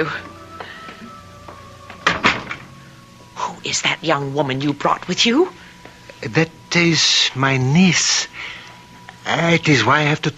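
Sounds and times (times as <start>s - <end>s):
speech: 0.0s - 0.3s, 3.6s - 5.6s, 6.2s - 8.6s, 9.2s - 10.3s
door opening: 0.0s - 3.3s.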